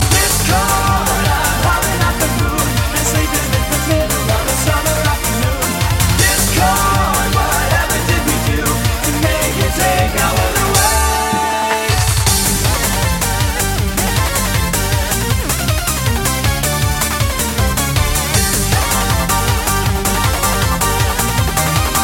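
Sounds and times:
eurobeat music: 0.0 - 22.0.

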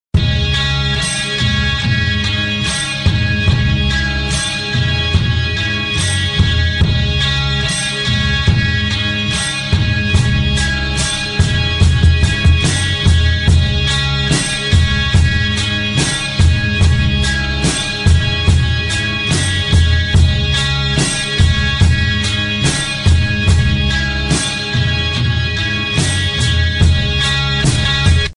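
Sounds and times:
underground rock music: 0.2 - 28.3.

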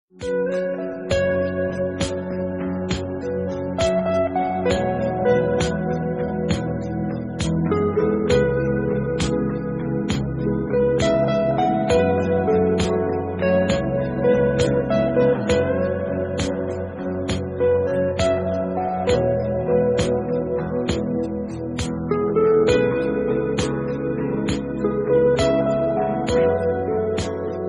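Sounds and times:
romantic love music: 0.3 - 27.6.

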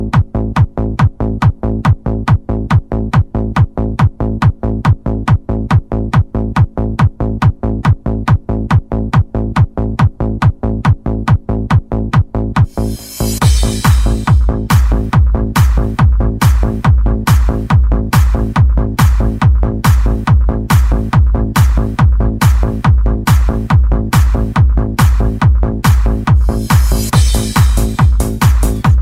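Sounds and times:
bass: 0.0 - 29.0.

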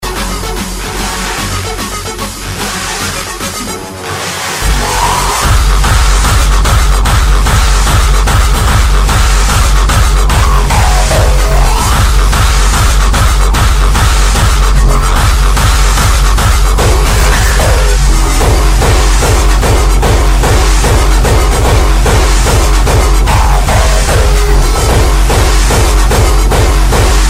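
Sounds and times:
hardstyle music: 0.0 - 27.2.

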